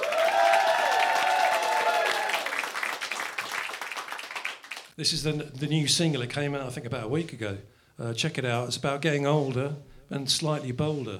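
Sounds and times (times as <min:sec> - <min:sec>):
audience applause for band: 0:00.0 - 0:04.9
speech: 0:05.0 - 0:11.1.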